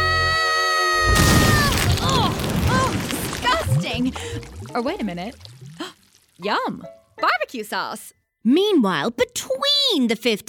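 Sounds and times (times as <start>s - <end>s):
cartoon barbecue explosion boom: 1.1s - 5.5s
rumbling crash: 1.1s - 5.5s
warbling tones: 2.4s - 6.6s
speech: 4.0s - 5.5s, 6.4s - 10.4s.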